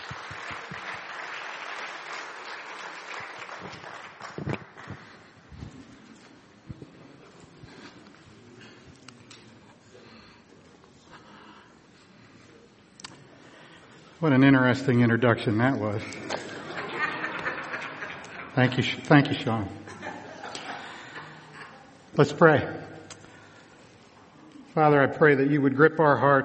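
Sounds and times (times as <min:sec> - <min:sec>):
audience applause: 0:00.0 - 0:05.5
speech: 0:14.2 - 0:16.4, 0:18.6 - 0:19.8, 0:22.2 - 0:22.9, 0:24.8 - 0:26.4
laughter: 0:16.0 - 0:18.6, 0:19.7 - 0:22.0.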